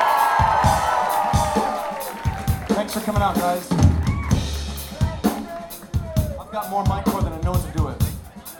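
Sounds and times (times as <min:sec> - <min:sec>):
live show audience cheering and applauding a band from Morgantown, West Virginia: 0:00.0 - 0:06.7
speech: 0:03.1 - 0:03.8, 0:06.6 - 0:08.0.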